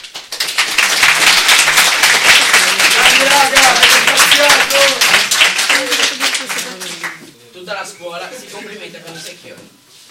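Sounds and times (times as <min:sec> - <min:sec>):
crowd clapping at a school assembly: 0:00.0 - 0:07.3.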